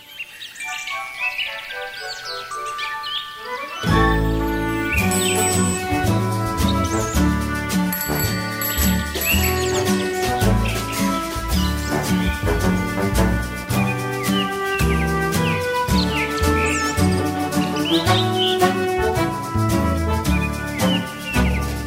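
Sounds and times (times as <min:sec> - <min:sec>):
instrumental music: 0:00.7 - 0:21.8.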